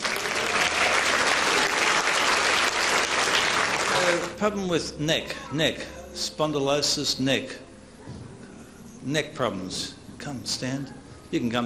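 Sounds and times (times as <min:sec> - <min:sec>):
audience applause: 0:00.0 - 0:04.4
speech: 0:04.4 - 0:07.7, 0:09.0 - 0:11.6.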